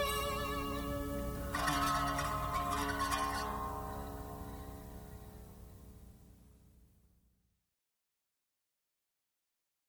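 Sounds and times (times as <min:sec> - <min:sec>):
slide guitar playing country blues: 0:00.0 - 0:05.1.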